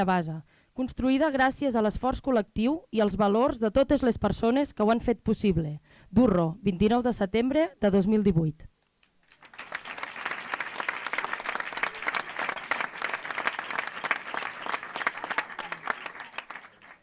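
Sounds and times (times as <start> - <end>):
speech: 0.0 - 8.7
audience applause at a ceremony: 9.3 - 17.0.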